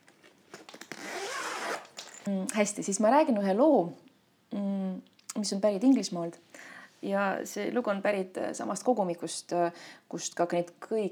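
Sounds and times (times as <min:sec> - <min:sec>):
zipper opening on an instrument case: 0:00.6 - 0:02.3
speech: 0:02.3 - 0:04.8, 0:05.4 - 0:11.1.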